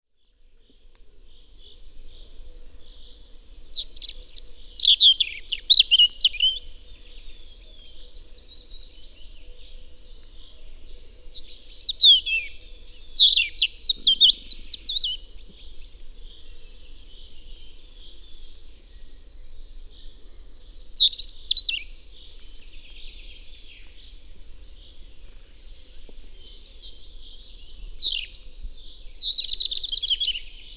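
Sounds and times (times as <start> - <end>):
European robin song: 3.5 - 10.4, 11.3 - 18.2, 20.3 - 24.9, 25.6 - 30.7.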